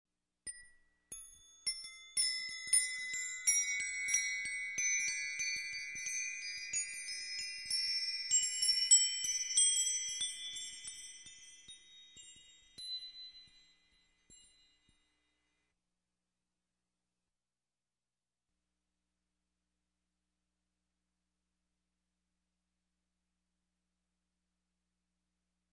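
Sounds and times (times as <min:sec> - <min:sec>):
chime: 0:00.5 - 0:15.6.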